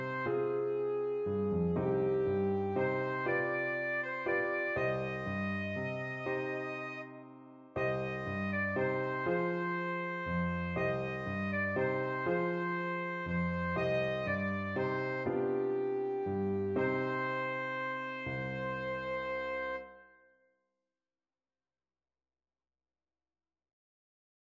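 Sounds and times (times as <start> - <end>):
alto saxophone: 0.0 - 7.2, 7.8 - 20.1.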